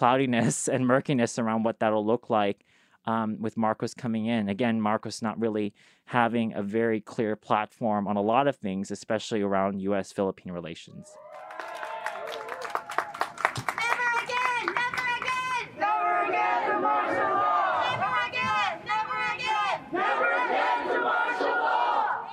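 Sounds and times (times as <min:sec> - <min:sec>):
speech: 0:00.0 - 0:11.8
sharp claps: 0:11.5 - 0:15.4
crowd of protesters shouting: 0:14.0 - 0:22.3
protesters chanting rhythmically: 0:15.5 - 0:22.3.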